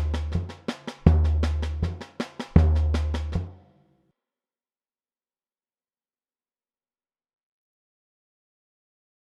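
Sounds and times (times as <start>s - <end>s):
samba marcação drum pattern variations: 0.0s - 3.7s.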